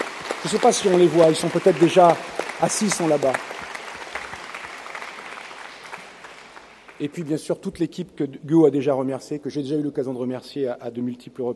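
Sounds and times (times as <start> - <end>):
audience applause: 0.0 - 7.3
speech: 0.4 - 3.5, 7.0 - 11.5.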